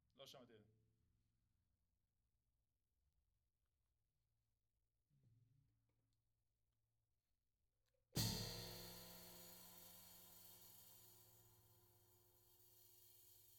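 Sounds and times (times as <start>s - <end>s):
tom drum: 8.2s - 11.4s.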